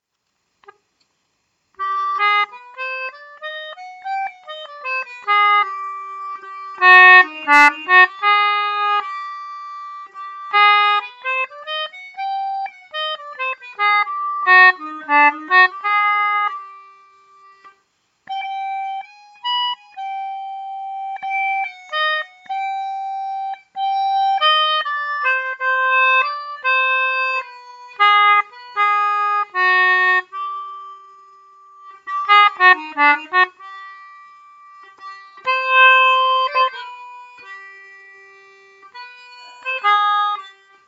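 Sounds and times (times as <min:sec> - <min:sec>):
instrument noodling in A flat E flat F: 0:01.8 - 0:40.8.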